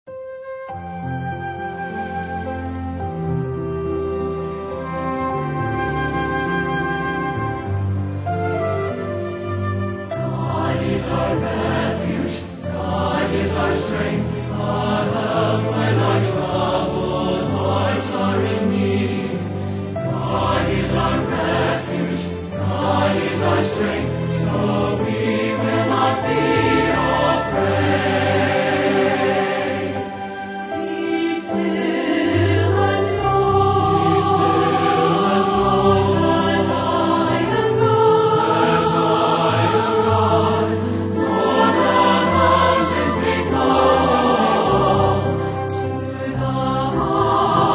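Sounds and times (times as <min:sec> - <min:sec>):
orchestra playing: 0:00.7 - 0:47.7
singers: 0:10.2 - 0:47.7.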